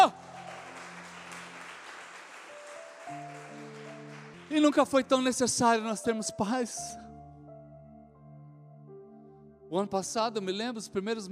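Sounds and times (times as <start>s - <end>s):
audience applause: 0.0s - 5.0s
sustained keyboard or organ chords: 0.0s - 11.3s
speech: 4.5s - 7.0s, 9.7s - 11.3s.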